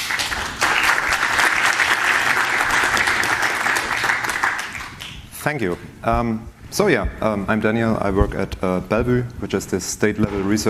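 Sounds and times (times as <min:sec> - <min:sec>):
conference audience applause welcoming a speaker: 0:00.0 - 0:05.2
speech: 0:05.4 - 0:10.6.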